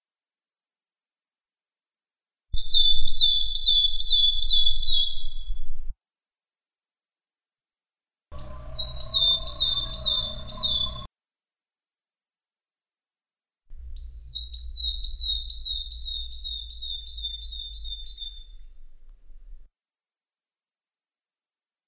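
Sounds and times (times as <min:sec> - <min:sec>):
bird singing one long high pure whistle: 0:02.6 - 0:05.6, 0:08.4 - 0:11.1, 0:14.0 - 0:18.6.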